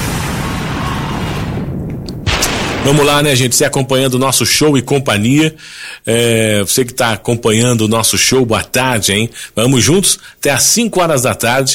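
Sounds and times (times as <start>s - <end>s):
explosion sound effect played on the radio: 0.0s - 3.6s
speech: 2.8s - 11.7s.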